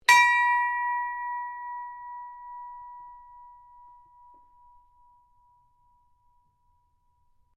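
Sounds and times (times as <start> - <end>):
ship's bell ringing: 0.0 - 7.5.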